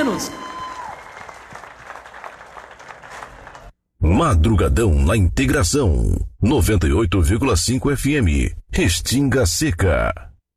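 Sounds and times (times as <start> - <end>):
faint audience applause: 0.0 - 3.8
speech: 0.1 - 0.5, 4.1 - 10.3.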